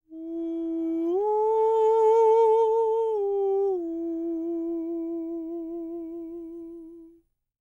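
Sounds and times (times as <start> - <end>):
falsetto jazz vocal effect: 0.1 - 7.2.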